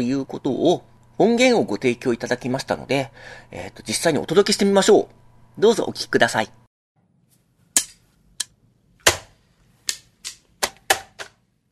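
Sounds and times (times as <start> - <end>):
speech: 0.0 - 6.6
hand slapping a shogi game clock: 9.9 - 11.4.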